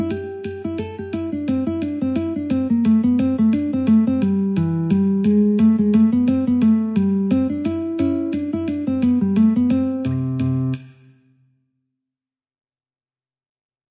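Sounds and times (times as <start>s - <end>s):
metronome at 88: 0.0s - 11.0s
guitar: 0.0s - 11.2s.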